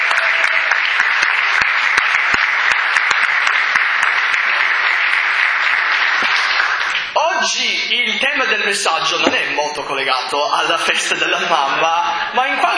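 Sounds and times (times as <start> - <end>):
audience applause: 0.0 - 7.2
speech: 7.5 - 12.7.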